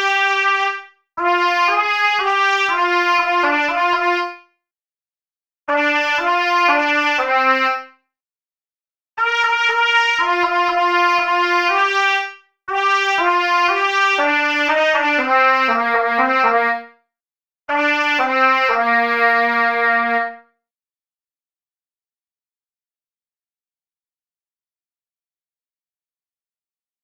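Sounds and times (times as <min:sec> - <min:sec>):
trumpet: 0:00.0 - 0:04.4, 0:05.7 - 0:07.9, 0:09.2 - 0:17.0, 0:17.7 - 0:20.4.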